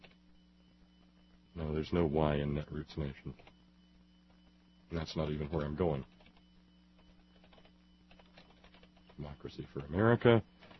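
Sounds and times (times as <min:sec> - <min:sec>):
steady low hum: 0:00.0 - 0:10.7
speech: 0:01.6 - 0:03.5, 0:04.9 - 0:06.2, 0:09.2 - 0:10.5
typing on a computer keyboard: 0:06.1 - 0:10.0, 0:10.6 - 0:10.7.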